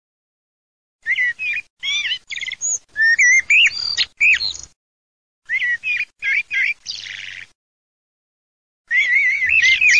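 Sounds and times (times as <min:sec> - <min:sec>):
common blackbird singing: 0:01.0 - 0:04.8, 0:05.5 - 0:07.5, 0:08.9 - 0:09.9.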